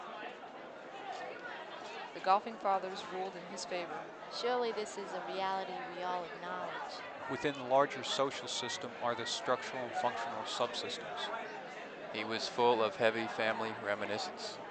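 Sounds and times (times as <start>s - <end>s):
noisy babble of voices: 0.0s - 14.7s.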